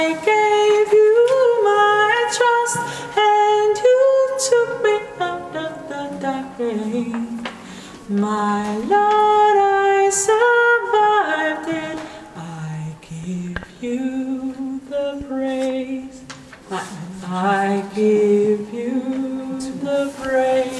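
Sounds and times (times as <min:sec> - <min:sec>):
soprano singing: 0:00.0 - 0:20.7.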